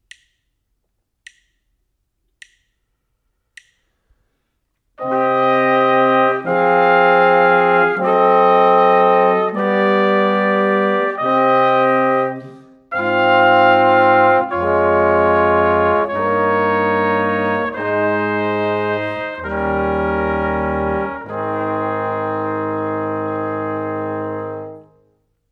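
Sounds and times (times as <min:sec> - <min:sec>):
brass quartet: 0:05.0 - 0:25.4.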